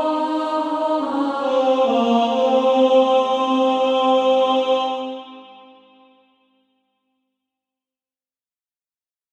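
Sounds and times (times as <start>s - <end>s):
female choir singing A1: 0.0s - 6.2s.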